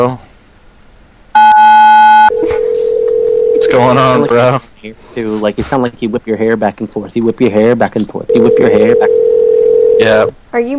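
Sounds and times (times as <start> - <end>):
speech: 0.0 - 0.2, 3.7 - 10.7
telephone touch tone: 1.4 - 4.0, 8.3 - 10.2.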